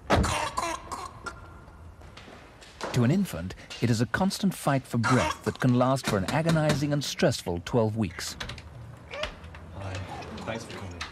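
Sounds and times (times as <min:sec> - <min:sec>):
whooping cough: 0:00.2 - 0:01.4, 0:05.0 - 0:06.2
speech: 0:03.0 - 0:08.5.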